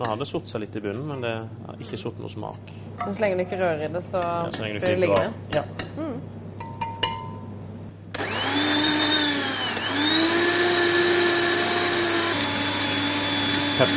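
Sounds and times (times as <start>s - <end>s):
speech: 0.0s - 6.0s, 13.8s - 13.9s
blender motor whine blending a dish: 8.1s - 13.9s.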